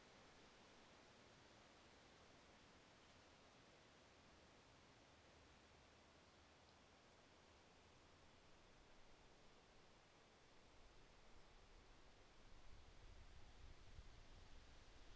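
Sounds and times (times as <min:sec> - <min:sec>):
wind in a forest: 0:00.0 - 0:15.1.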